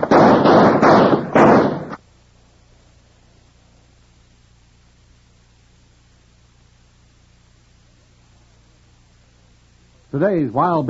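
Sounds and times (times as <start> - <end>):
gunfire in a radio drama shootout: 0.0 - 2.0
speech: 10.2 - 10.8.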